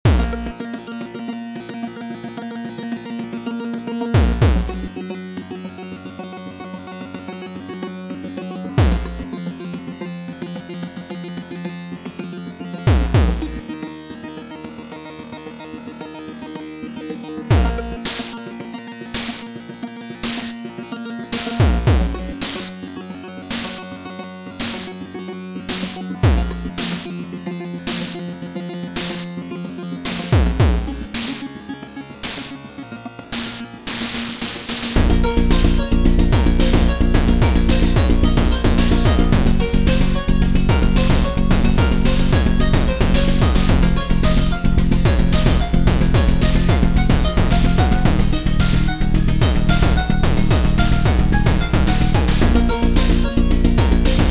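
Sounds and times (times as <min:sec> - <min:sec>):
epic chiptune music: 0:00.1 - 0:00.6, 0:04.2 - 0:04.9, 0:08.8 - 0:09.3, 0:12.9 - 0:13.6, 0:17.5 - 0:18.4, 0:19.2 - 0:19.4, 0:20.2 - 0:20.6, 0:21.4 - 0:22.7, 0:23.5 - 0:23.8, 0:24.6 - 0:24.9, 0:25.7 - 0:27.1, 0:27.9 - 0:28.2, 0:29.0 - 0:29.3, 0:30.1 - 0:31.5, 0:32.2 - 0:32.6, 0:33.3 - 0:54.3.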